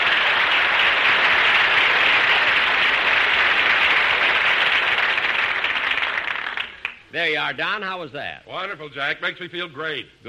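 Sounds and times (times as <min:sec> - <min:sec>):
studio audience applause: 0:00.0 - 0:07.0
speech: 0:07.1 - 0:10.2.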